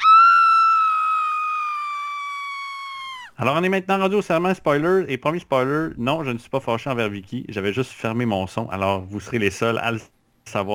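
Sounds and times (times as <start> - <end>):
woman screaming sound effect: 0.0 - 3.4
speech: 3.4 - 10.7.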